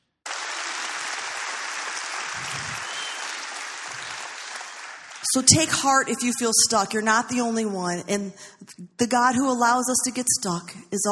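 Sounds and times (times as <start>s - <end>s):
audience applause: 0.3s - 5.4s
speech: 5.2s - 11.0s.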